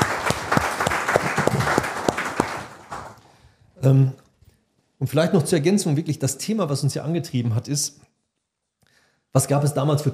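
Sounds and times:
audience applause: 0:00.0 - 0:03.2
speech: 0:03.8 - 0:04.2, 0:05.0 - 0:08.1, 0:09.3 - 0:10.1.

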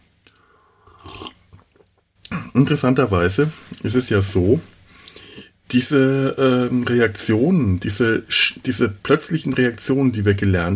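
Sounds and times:
slurp of tea: 0:00.8 - 0:01.4
speech: 0:02.6 - 0:04.8, 0:05.7 - 0:10.7.

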